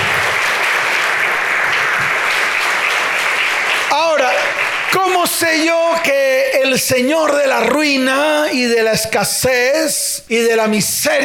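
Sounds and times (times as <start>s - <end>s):
audience applause: 0.0s - 6.1s
speech: 5.3s - 11.2s.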